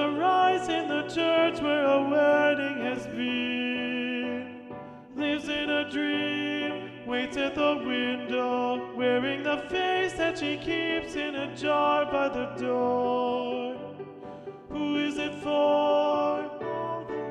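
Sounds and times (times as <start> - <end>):
alto section of SATB choir singing: 0.0 - 17.2.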